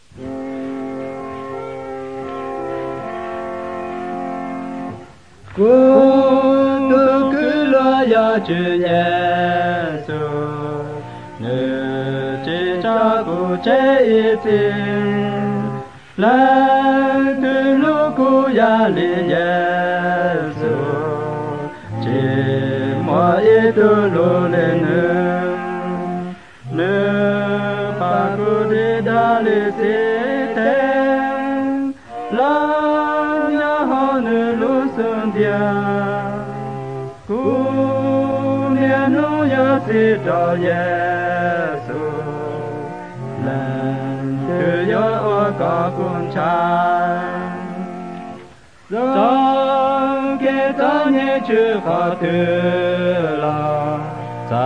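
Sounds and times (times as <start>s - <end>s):
White Hmong songs: 0.0s - 54.6s.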